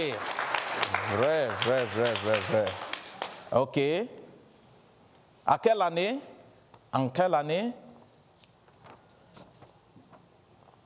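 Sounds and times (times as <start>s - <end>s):
speech: 0.0s - 0.3s, 1.1s - 2.8s, 3.5s - 4.2s, 5.5s - 6.3s, 6.9s - 7.8s
audience applause: 0.0s - 3.5s.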